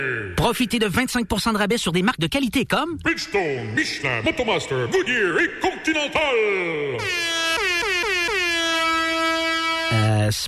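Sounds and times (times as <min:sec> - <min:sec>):
speech: 0:00.0 - 0:07.4, 0:09.9 - 0:10.4
siren-like air horn blast: 0:07.0 - 0:10.3.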